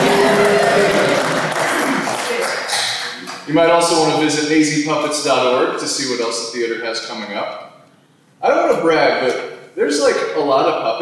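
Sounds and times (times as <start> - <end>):
audience applause: 0.0 - 3.5
speech: 3.5 - 7.7, 8.4 - 11.0.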